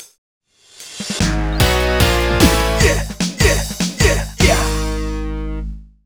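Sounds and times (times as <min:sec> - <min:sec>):
big rock band finish: 0:01.2 - 0:05.0.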